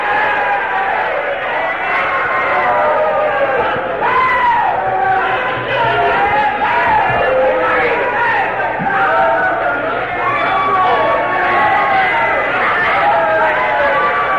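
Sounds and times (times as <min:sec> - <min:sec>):
large crowd shouting: 0:00.0 - 0:14.3.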